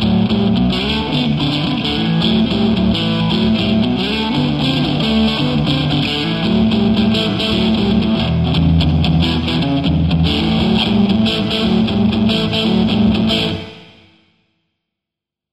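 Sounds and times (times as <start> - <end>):
overdriven electric guitar through a Marshall JCM800 amp with P90 pickup: 0.0 - 14.2.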